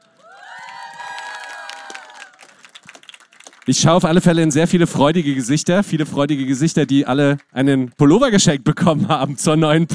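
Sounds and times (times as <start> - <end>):
crowd audience applause and cheering: 0.0 - 4.0
speech: 3.7 - 9.9.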